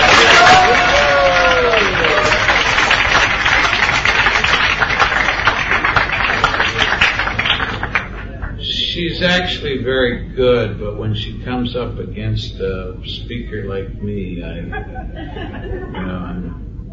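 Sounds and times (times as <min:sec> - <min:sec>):
audience applause: 0:00.0 - 0:08.6
speech: 0:09.2 - 0:16.7
laughter: 0:14.6 - 0:16.9.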